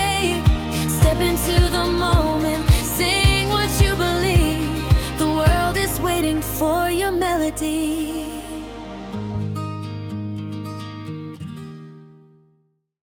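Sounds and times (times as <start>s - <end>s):
person singing: 0.0s - 9.4s.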